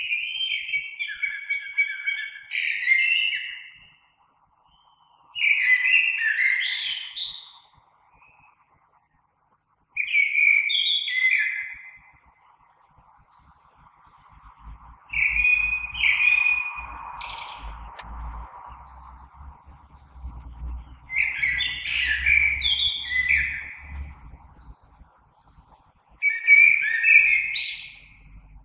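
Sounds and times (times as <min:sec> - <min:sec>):
common blackbird song: 0:00.0 - 0:08.8, 0:10.0 - 0:28.6
low rumble: 0:13.1 - 0:28.6.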